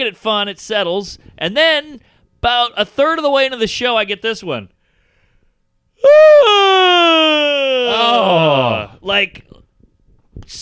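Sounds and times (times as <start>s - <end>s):
speech: 0.0s - 4.8s, 6.0s - 9.6s
exaggerated cartoonish yawn imitation: 6.0s - 9.0s.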